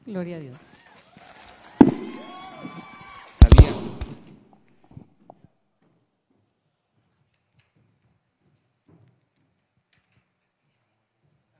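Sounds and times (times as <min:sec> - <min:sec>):
speech: 0:00.1 - 0:00.8
radio show jingle: 0:03.4 - 0:04.2.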